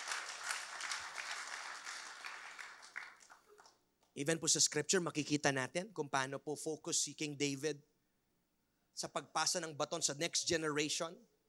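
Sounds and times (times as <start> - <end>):
church congregation applauding: 0.0 - 3.8
speech: 4.2 - 7.9, 9.0 - 11.3.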